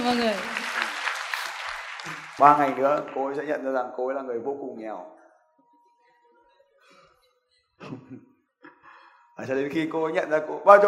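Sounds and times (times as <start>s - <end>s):
audience clapping: 0.0s - 3.6s
speech: 0.1s - 0.6s, 2.4s - 5.2s, 9.4s - 10.8s.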